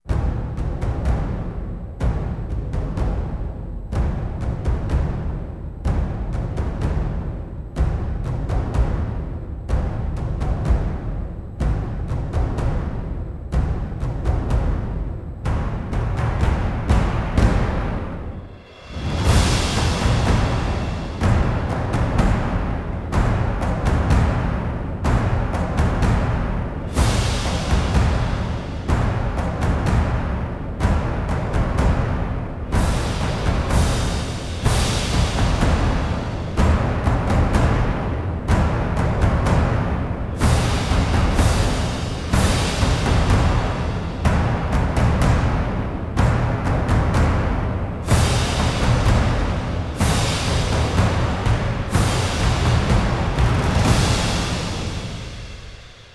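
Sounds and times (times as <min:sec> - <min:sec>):
drums: 0:00.0 - 0:56.1.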